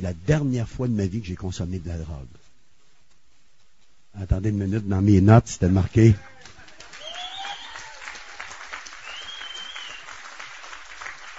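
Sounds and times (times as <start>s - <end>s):
speech: 0.0s - 2.4s, 4.2s - 6.3s
audience applause: 6.2s - 11.3s
faint whistles and cheers: 6.4s - 11.3s.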